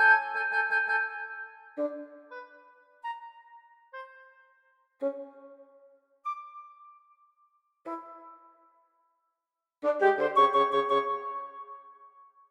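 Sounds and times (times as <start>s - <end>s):
woodwind trio: 0.0s - 4.4s, 7.9s - 8.5s, 9.8s - 11.7s.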